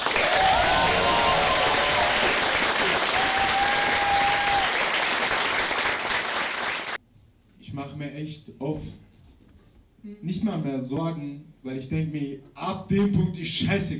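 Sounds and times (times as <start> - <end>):
audience applause: 0.0 - 7.0
speech: 8.2 - 9.0, 10.0 - 13.9.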